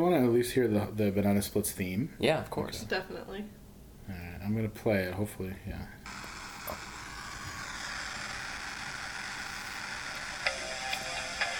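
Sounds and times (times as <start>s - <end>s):
speech: 0.0s - 6.8s
VHS tape warming up: 6.1s - 11.5s.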